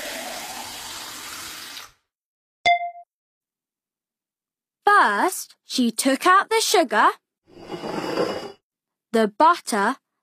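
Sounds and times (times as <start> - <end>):
kitchen tap running as hands are washed: 0.0 - 2.0
speech: 5.0 - 7.2, 9.2 - 10.0.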